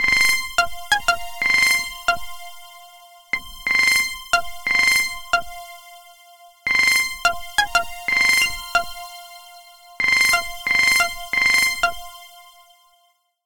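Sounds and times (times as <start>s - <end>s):
ringtone: 0.0s - 2.5s, 4.3s - 5.6s, 6.7s - 9.2s, 10.0s - 12.3s.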